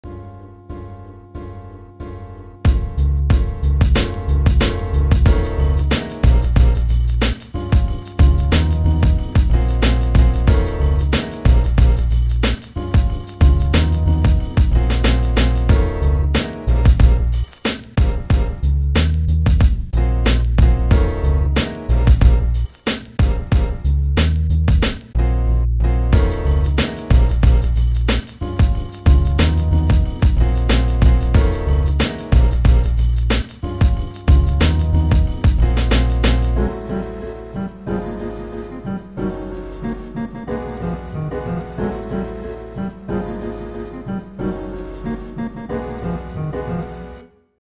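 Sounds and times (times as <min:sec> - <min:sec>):
piano: 0:00.0 - 0:47.6.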